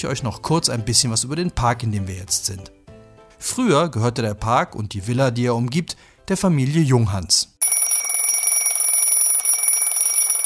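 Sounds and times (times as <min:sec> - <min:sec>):
speech: 0:00.0 - 0:02.8, 0:03.4 - 0:07.8
alarm clock ringing: 0:07.6 - 0:10.4.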